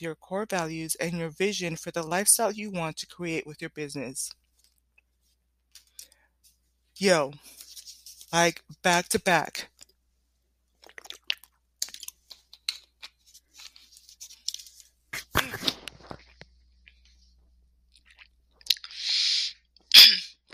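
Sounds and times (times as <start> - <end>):
speech: 0.0 - 4.4, 7.0 - 7.6, 8.3 - 9.7
person drinking water: 10.8 - 12.3, 15.2 - 17.0, 17.9 - 20.5.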